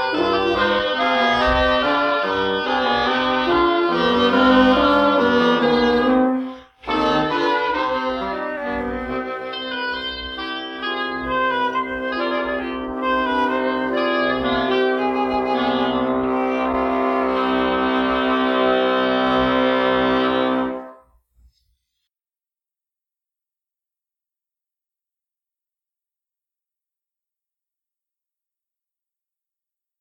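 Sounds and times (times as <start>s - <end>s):
fugue: 0.0s - 21.0s.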